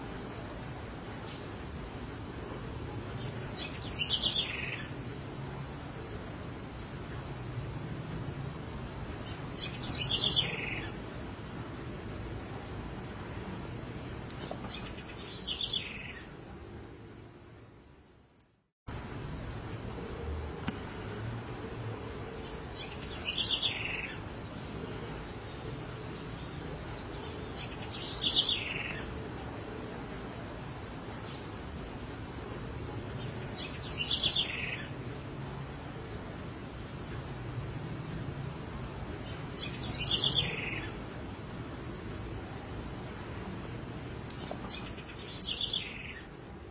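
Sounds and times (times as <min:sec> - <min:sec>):
House wren song: 0:00.0 - 0:17.8, 0:18.9 - 0:46.7.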